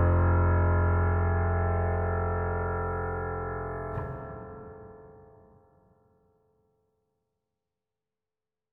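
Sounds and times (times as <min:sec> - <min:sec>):
Rosewood Grand haunted piano keys: 0:00.0 - 0:05.8.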